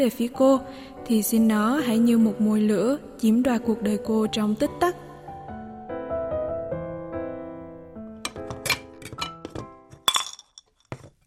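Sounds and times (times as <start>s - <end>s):
speech: 0.0s - 5.0s
pans clinking while rummaging for a pan: 8.3s - 11.1s.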